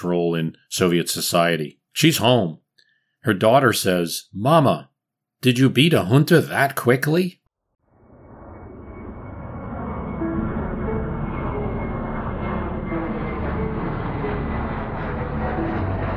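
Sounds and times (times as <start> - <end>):
speech: 0.0 - 2.6, 3.2 - 7.4
airplane engine flying overhead: 7.9 - 16.1.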